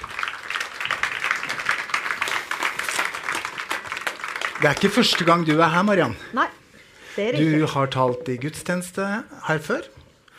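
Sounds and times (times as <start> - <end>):
applause: 0.0 - 6.0
speech: 4.6 - 6.6, 7.2 - 10.0.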